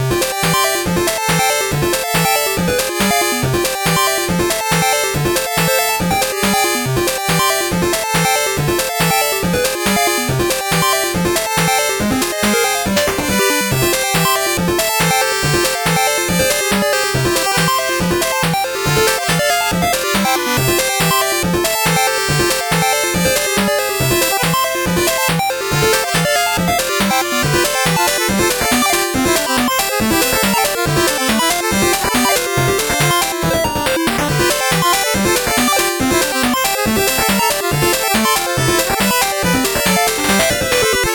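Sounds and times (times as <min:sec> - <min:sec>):
fast 8-bit background music: 0:00.0 - 0:41.1.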